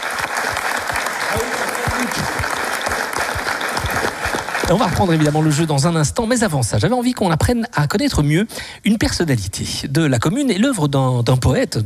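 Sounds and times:
audience applause: 0:00.0 - 0:06.0
speech: 0:01.3 - 0:02.4, 0:04.7 - 0:11.8.

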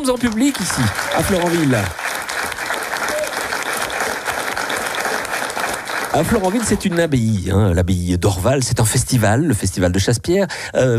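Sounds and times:
speech: 0:00.0 - 0:02.1, 0:06.1 - 0:10.9
audience applause: 0:00.0 - 0:07.5.

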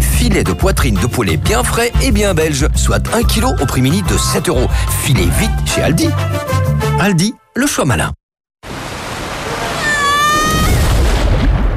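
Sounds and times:
speech: 0:00.2 - 0:08.2
water slide descent at Aqualibi: 0:08.7 - 0:11.6.

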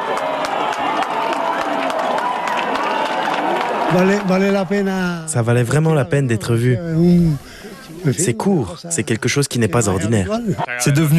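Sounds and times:
large crowd cheering and shouting during an eclipse: 0:00.0 - 0:05.8
speech: 0:03.9 - 0:11.1.

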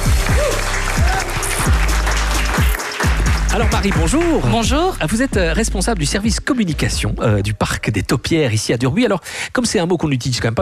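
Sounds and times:
audience applause: 0:00.0 - 0:04.5
speech: 0:03.6 - 0:10.5.

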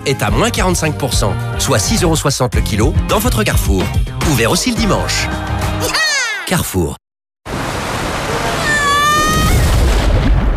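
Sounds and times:
speech: 0:00.0 - 0:07.0
water slide descent at Aqualibi water park: 0:07.5 - 0:10.5.

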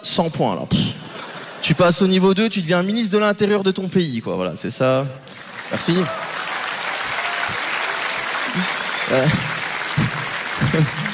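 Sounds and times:
speech: 0:00.2 - 0:01.0, 0:01.6 - 0:06.4, 0:09.1 - 0:09.6
audience applause: 0:05.3 - 0:11.1.

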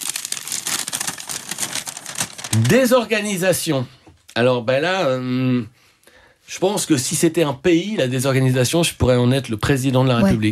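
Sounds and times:
sheet of paper crinkling while handled: 0:00.0 - 0:03.0
speech: 0:02.5 - 0:05.8, 0:06.5 - 0:10.5.

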